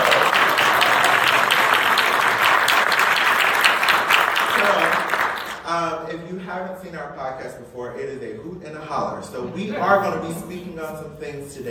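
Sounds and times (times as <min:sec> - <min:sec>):
audience applause: 0:00.0 - 0:05.6
speech: 0:06.6 - 0:11.6.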